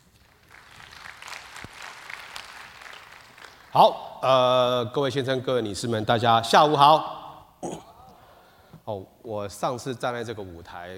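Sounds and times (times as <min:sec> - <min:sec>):
audience applause welcoming speaker: 0:00.2 - 0:03.7
speech: 0:03.7 - 0:07.8, 0:08.9 - 0:10.9.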